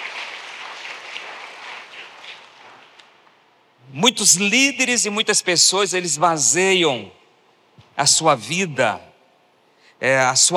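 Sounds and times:
audience applause: 0.0 - 3.0
speech: 3.9 - 7.2, 8.0 - 9.1, 10.0 - 10.5.

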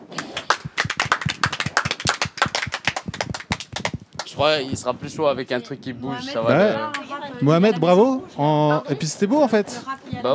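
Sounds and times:
crowd applauding: 0.0 - 4.4
speech: 4.4 - 10.3.

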